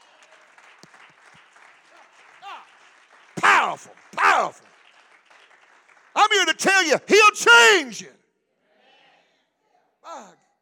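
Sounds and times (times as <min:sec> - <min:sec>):
audience hand clapping: 0:00.0 - 0:07.8
speech: 0:03.6 - 0:04.8, 0:06.2 - 0:08.2.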